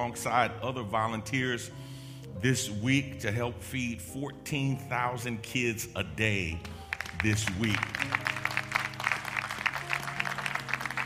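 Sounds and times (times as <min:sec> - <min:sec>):
speech: 0:00.0 - 0:08.3
audience clapping: 0:06.6 - 0:11.0.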